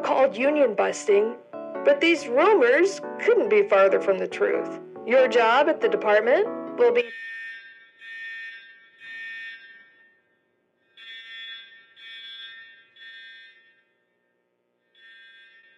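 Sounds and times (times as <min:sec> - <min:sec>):
speech: 0:00.2 - 0:07.3
fire alarm beeping: 0:05.0 - 0:15.7.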